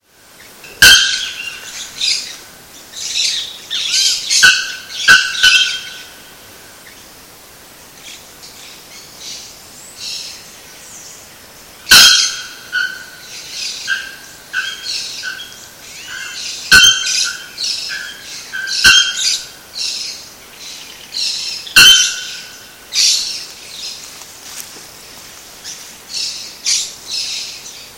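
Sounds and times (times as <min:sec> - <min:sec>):
background hiss: 0:00.0 - 0:27.9
bare-throated bellbird metallic calls: 0:00.6 - 0:02.3, 0:03.2 - 0:06.2, 0:11.9 - 0:19.6, 0:21.3 - 0:23.4.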